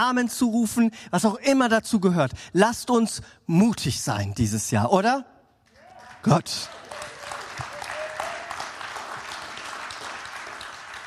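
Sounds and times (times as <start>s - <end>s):
speech: 0.0s - 5.3s, 6.2s - 6.9s
crowd applauding: 5.7s - 11.0s.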